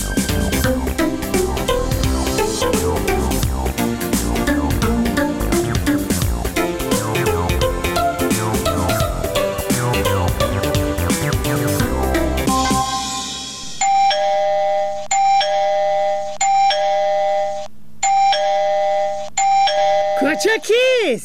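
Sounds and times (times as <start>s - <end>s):
music: 0.0s - 14.1s
electronic doorbell ringing: 13.8s - 20.7s.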